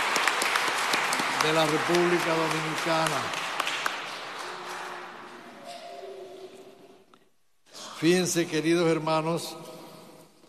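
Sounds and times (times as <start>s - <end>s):
church congregation applauding mothers at a Mother's Day Mass in the Dominican Republic: 0.0s - 5.6s
speech: 1.4s - 3.4s, 8.0s - 9.7s.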